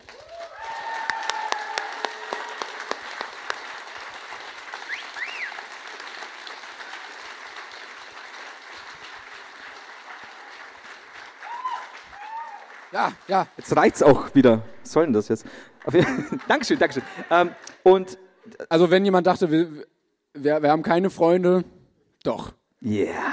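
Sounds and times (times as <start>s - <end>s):
crowd cheering: 0.0s - 18.0s
large live audience clapping: 0.0s - 18.0s
shrill rising whistles: 4.9s - 5.6s
speech: 12.9s - 23.3s
laughter: 14.1s - 17.7s.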